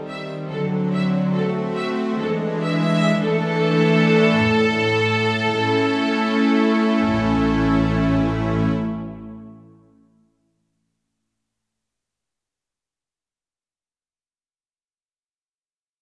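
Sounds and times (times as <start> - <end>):
strings playing a folk dance: 0.0 - 9.9.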